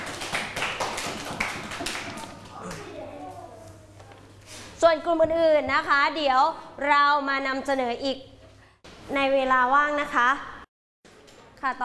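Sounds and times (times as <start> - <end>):
classroom applause: 0.0 - 2.8
speech: 4.8 - 8.3, 9.1 - 10.5, 11.6 - 11.8.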